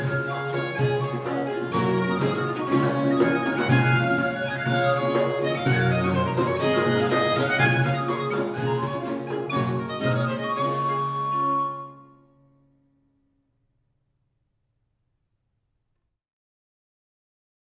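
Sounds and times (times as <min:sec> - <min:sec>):
traditional English country dance music: 0:00.0 - 0:12.0.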